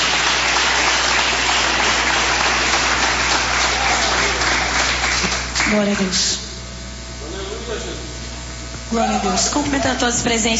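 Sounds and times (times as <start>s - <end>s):
audience applauding loudly: 0.0s - 6.2s
speech: 5.7s - 6.4s, 8.9s - 10.5s.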